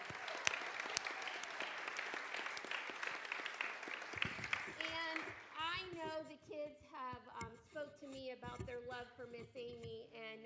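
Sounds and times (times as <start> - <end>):
audience applause: 0.0 - 5.5
speech: 6.6 - 10.4.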